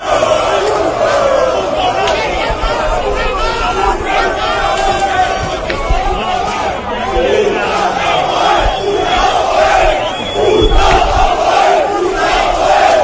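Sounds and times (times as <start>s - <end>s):
Apoel de Nicosia fans clashing with Ertzaina police outside San Mamés: 0.0s - 13.0s.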